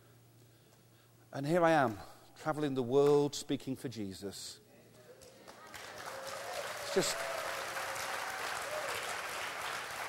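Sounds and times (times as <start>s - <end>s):
speech: 1.3s - 4.6s, 6.9s - 7.3s
audience clapping: 5.0s - 10.0s.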